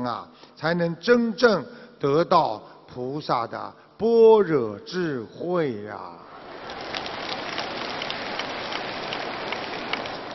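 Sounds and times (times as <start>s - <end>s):
speech: 0.0s - 6.2s
audience applause: 6.3s - 10.3s.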